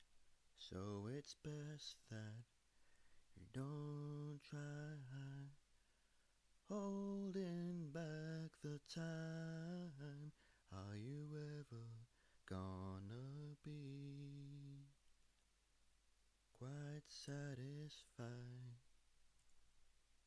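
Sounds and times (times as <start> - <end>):
short a cappella singing: 0.6 - 2.5, 3.4 - 5.6, 6.7 - 15.0, 16.6 - 18.8.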